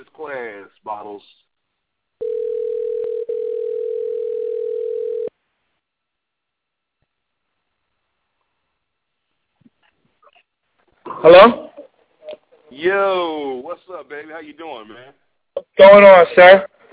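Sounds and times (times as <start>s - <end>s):
speech: 0.0s - 1.4s, 11.2s - 11.7s, 12.8s - 16.7s
outgoing phone call ringing tone: 2.2s - 5.3s.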